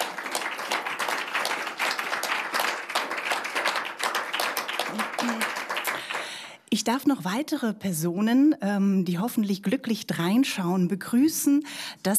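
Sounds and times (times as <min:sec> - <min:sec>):
audience applause: 0:00.0 - 0:06.5
speech: 0:06.7 - 0:12.1.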